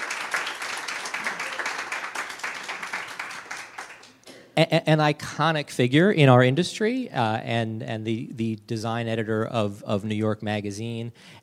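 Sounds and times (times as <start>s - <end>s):
live audience applause: 0.0s - 4.2s
speech: 4.6s - 11.4s.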